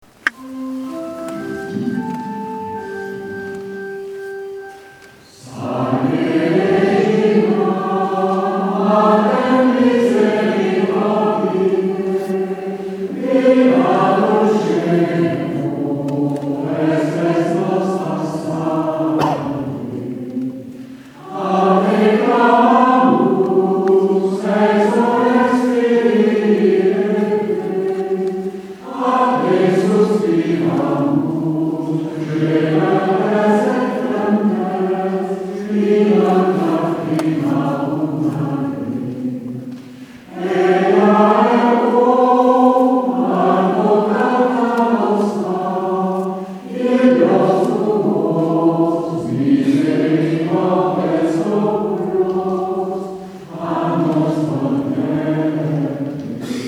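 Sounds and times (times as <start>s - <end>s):
plainchant singing in simple tone: 0.2s - 56.6s.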